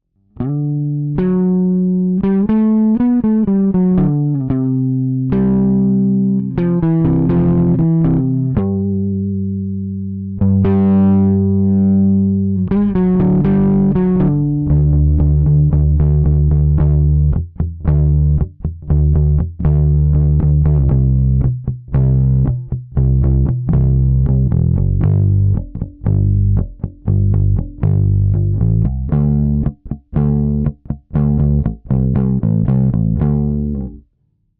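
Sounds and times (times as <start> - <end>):
bass with drive EQ boost: 0.0 - 34.1.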